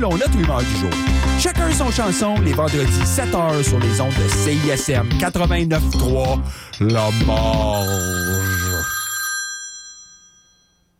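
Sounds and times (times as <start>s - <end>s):
speech: 0.0s - 8.6s
telephone ringing before voicemail: 7.7s - 10.9s.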